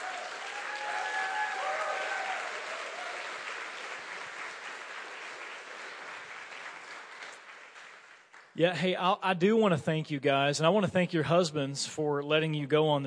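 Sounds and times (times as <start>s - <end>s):
audience applause: 0.0s - 8.6s
speech: 8.6s - 13.0s.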